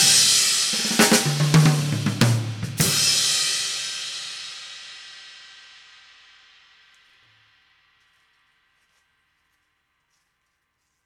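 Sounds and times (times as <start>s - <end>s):
jazz drums: 0.0s - 4.7s.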